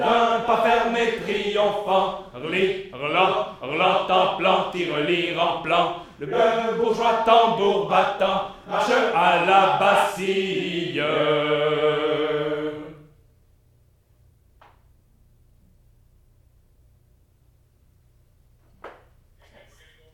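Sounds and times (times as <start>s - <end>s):
choir singing: 0.0s - 13.2s.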